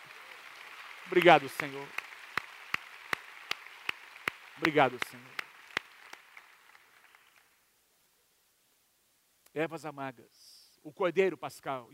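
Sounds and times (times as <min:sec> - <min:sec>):
audience clapping: 0:00.0 - 0:07.6
speech: 0:01.1 - 0:02.0, 0:04.6 - 0:05.4, 0:09.6 - 0:11.9.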